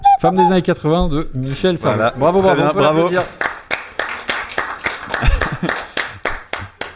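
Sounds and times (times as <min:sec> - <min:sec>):
speech: 0:00.2 - 0:03.4
audience applause: 0:02.9 - 0:06.9
laughter: 0:05.0 - 0:06.3.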